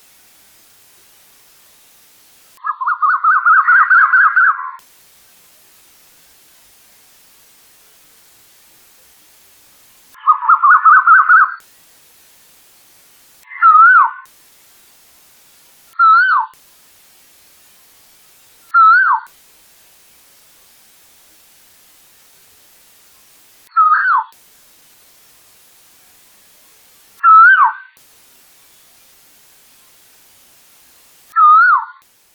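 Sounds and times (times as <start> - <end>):
Asian koel whistled call: 2.6 - 4.8, 10.2 - 11.6, 13.5 - 14.2, 16.0 - 16.5, 18.7 - 19.3, 23.7 - 24.3, 27.2 - 27.8, 31.4 - 32.0.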